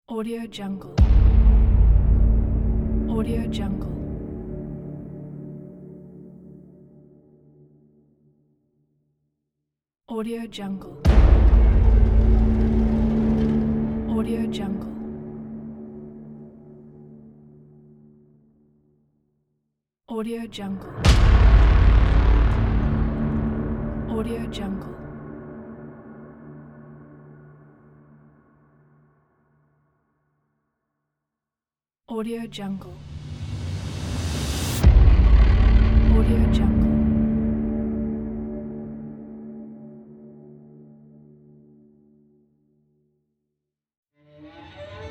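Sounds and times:
horror boom hit: 1.0 - 4.9, 11.1 - 16.6, 20.9 - 28.4, 33.0 - 39.3.

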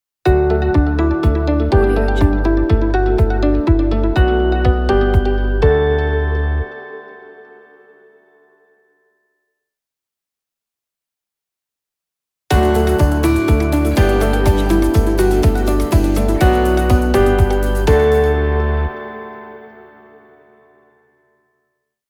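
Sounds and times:
happy uplifting inspiring logo music: 0.3 - 6.1, 12.5 - 19.1.

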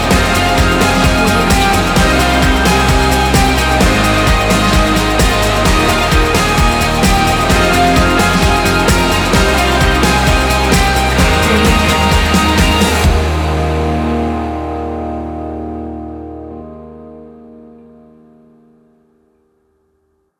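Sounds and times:
uplifting inspiring light rock music: 0.0 - 16.0.

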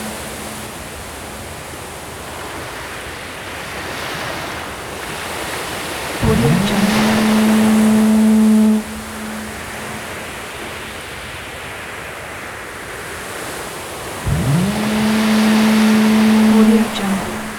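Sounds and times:
ship horns: 0.0 - 2.7, 5.1 - 11.4, 13.7 - 17.5
harbor ambience: 6.2 - 10.6, 14.2 - 17.5.

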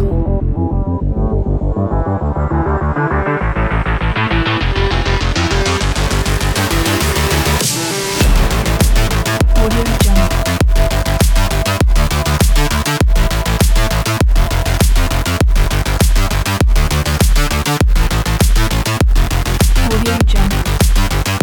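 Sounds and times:
technology robot sport music: 0.2 - 21.4.

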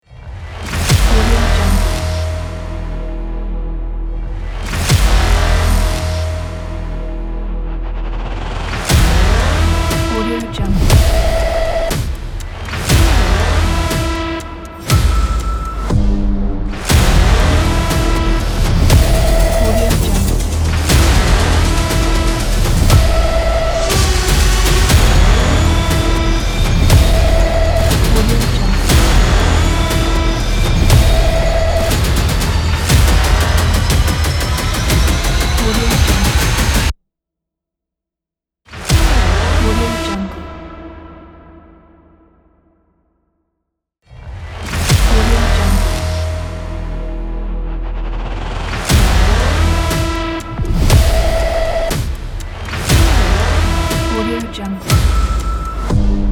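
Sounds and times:
hybrid aggressive trailer teaser music: 0.0 - 36.9, 38.7 - 42.9, 44.0 - 56.3.

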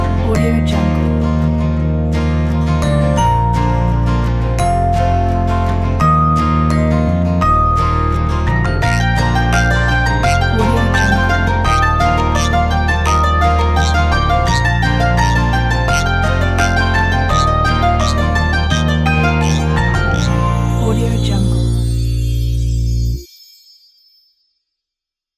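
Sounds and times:
quirky mandolin: 0.0 - 23.2
joyful bells: 6.0 - 24.4.

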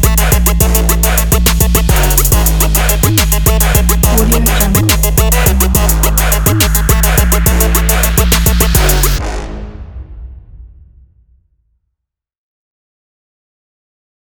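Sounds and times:
trap beat: 0.0 - 9.2.

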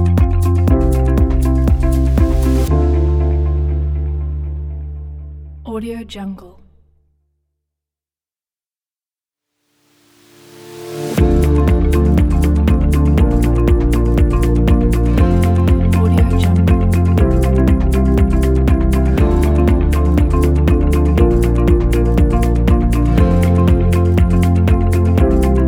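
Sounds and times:
uplifting corporate music: 0.0 - 5.2, 10.9 - 25.6.

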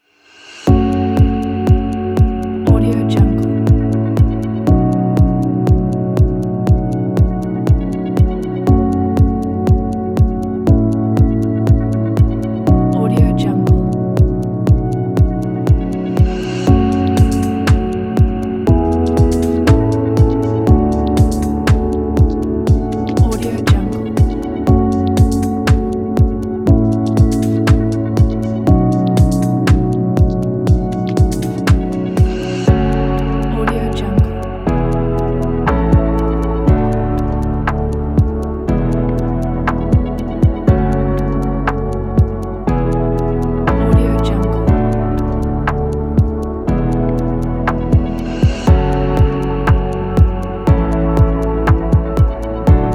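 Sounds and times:
timelapse music: 0.0 - 52.9.

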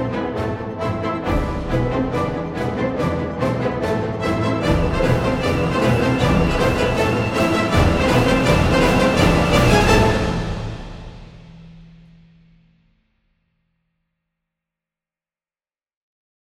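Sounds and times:
orchestral Russian folk tune: 0.0 - 11.6.

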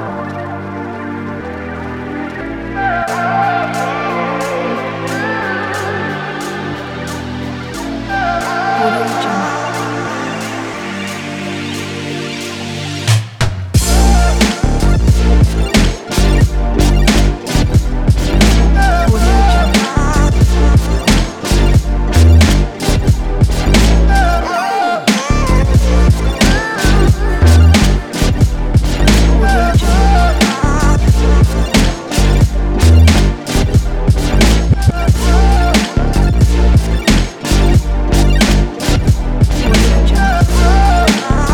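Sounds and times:
hip hop beat: 2.4 - 41.5.

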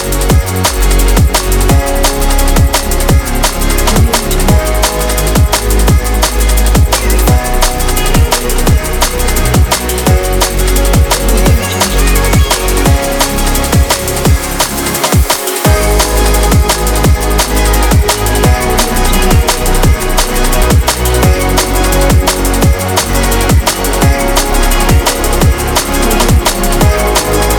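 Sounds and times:
drum and bass music: 0.0 - 27.5.

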